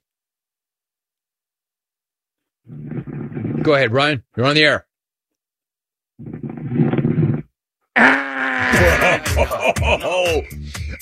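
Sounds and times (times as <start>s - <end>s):
loud rattling snoring: 2.6s - 3.8s, 6.2s - 9.4s
speech: 3.6s - 4.9s, 9.4s - 11.0s
laughter: 8.7s - 11.0s.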